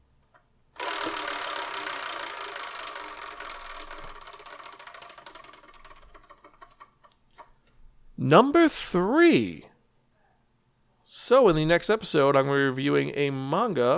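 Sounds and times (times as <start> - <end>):
wheel spun to pick a number: 0.8 - 7.6
speech: 8.2 - 9.7, 11.3 - 13.9.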